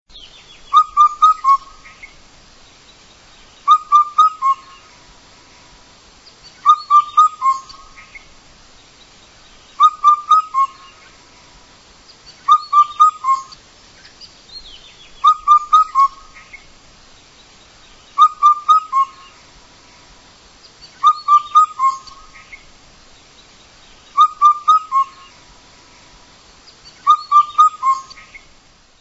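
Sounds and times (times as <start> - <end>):
bird song of clear whistled notes: 0.6 - 1.7, 3.6 - 4.8, 6.6 - 7.8, 9.8 - 10.9, 12.4 - 13.6, 15.2 - 16.3, 18.2 - 19.3, 21.0 - 22.2, 24.2 - 25.3, 27.0 - 28.4.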